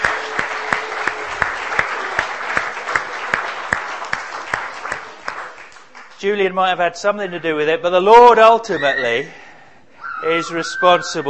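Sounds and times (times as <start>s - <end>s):
audience applause: 0.0s - 6.3s
speech: 6.2s - 9.4s, 10.2s - 11.2s.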